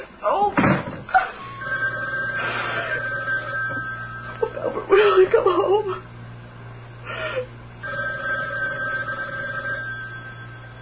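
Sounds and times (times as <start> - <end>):
distressed woman speaking: 0.0 - 0.6, 4.8 - 6.0
low constant hum: 0.0 - 10.8
old telephone bell ringing: 1.4 - 4.8, 7.8 - 10.8.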